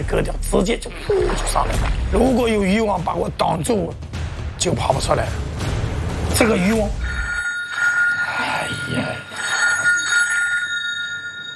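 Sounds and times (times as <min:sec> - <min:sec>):
speech: 0:00.0 - 0:05.7, 0:06.3 - 0:07.2
electronic telephone ring of an incoming distress call: 0:07.0 - 0:11.5.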